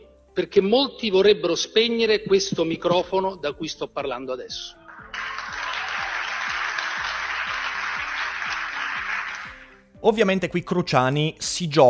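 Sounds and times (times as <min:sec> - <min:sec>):
speech: 0:00.4 - 0:04.8, 0:10.0 - 0:11.8
sustained audience applause: 0:04.9 - 0:09.8.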